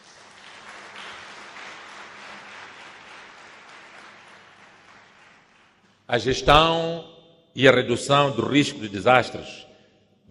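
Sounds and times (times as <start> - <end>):
audience applause: 0.0 - 6.0
speech: 6.1 - 9.7.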